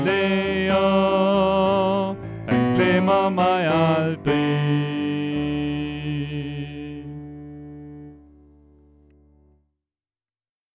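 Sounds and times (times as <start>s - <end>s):
tenor singing: 0.0s - 7.9s.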